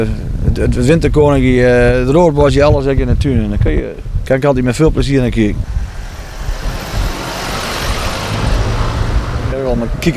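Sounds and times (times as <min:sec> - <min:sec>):
speech: 0:00.0 - 0:05.8, 0:09.7 - 0:10.1
jeep driving around: 0:05.2 - 0:10.1.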